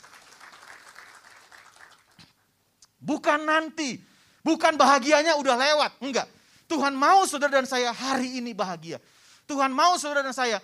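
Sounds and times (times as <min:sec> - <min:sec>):
audience clapping: 0:00.0 - 0:02.5
speech: 0:03.0 - 0:10.6.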